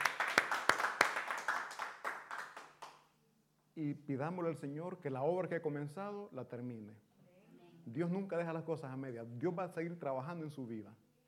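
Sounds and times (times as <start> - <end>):
crowd applauding: 0.0 - 3.0
speech: 3.8 - 7.1, 7.9 - 11.2.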